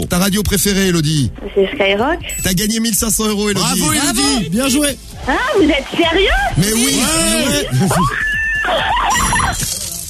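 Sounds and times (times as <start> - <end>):
speech: 0.0 - 9.9
laughter: 6.3 - 9.2
woman shrieking and squealing with joy after winning a radio contest prize: 7.7 - 9.6.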